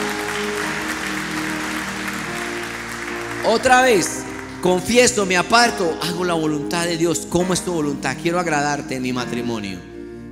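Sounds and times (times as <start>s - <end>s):
church congregation applauding: 0.0s - 6.5s
speech: 3.4s - 9.9s.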